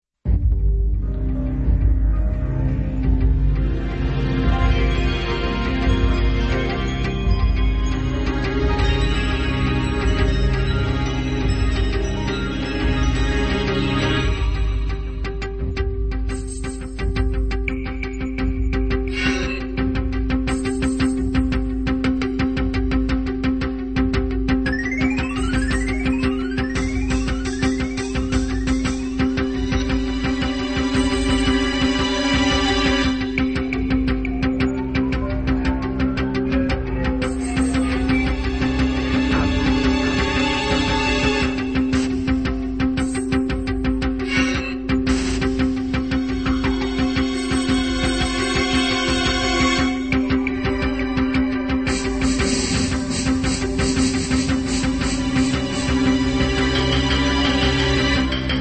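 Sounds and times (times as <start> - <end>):
background music: 0.2 - 58.6.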